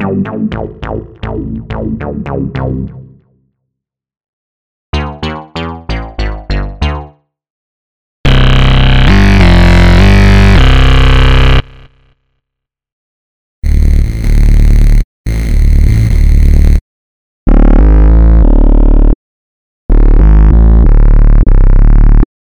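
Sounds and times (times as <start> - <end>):
bass: 0.0 - 3.4, 4.9 - 7.2, 8.2 - 12.1, 13.6 - 16.8, 17.5 - 19.2, 19.9 - 22.3.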